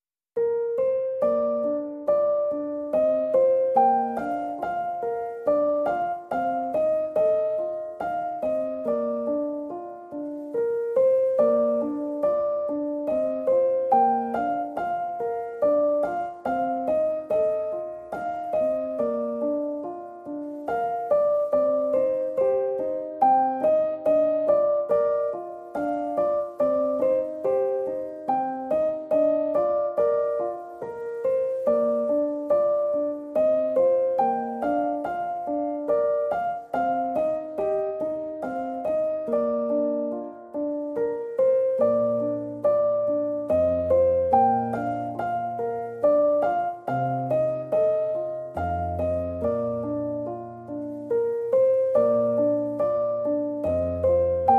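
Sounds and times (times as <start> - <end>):
piano piece: 0.3 - 54.5.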